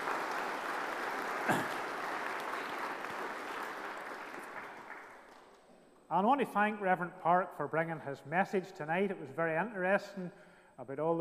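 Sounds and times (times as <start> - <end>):
audience applause: 0.0 - 5.6
speech: 6.1 - 11.1.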